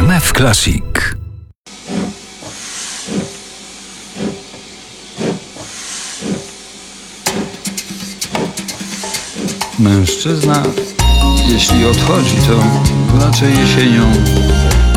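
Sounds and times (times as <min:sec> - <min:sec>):
speech: 0:00.2 - 0:01.2, 0:09.8 - 0:10.9, 0:11.5 - 0:14.9
steam locomotive hissing: 0:01.7 - 0:14.9
steam locomotive chuffing: 0:02.2 - 0:13.4.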